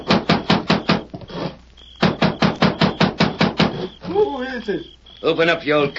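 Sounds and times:
loud pounding on a cabin door: 0.0s - 1.2s, 2.0s - 3.9s
speech: 4.6s - 5.9s.

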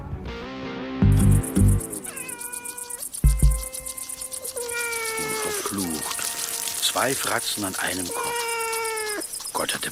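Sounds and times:
kitten meowing: 1.8s - 3.7s, 4.4s - 6.2s, 7.8s - 9.3s
speech: 7.0s - 8.5s, 9.6s - 9.9s.

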